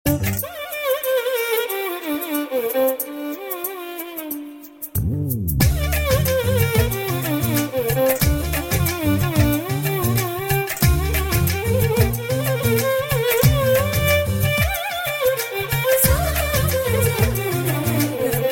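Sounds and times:
violin: 0.0 - 18.5.

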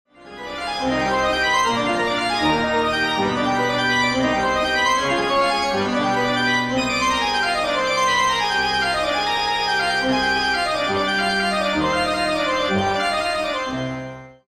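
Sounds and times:
organ playing an anthem: 0.2 - 14.4.

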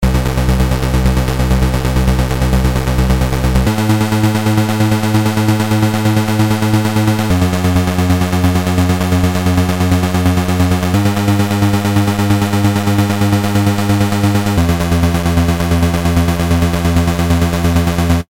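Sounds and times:
arpeggio: 0.0 - 18.1.

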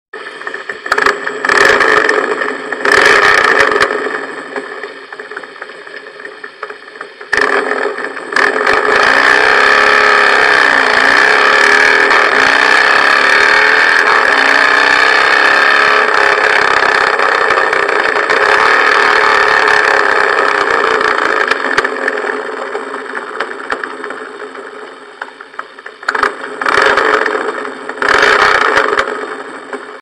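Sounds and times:
Harley Softail motorcycle engine: 0.2 - 29.9.

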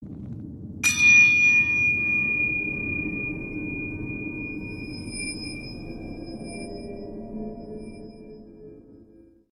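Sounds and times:
shrine bell: 0.8 - 8.6.

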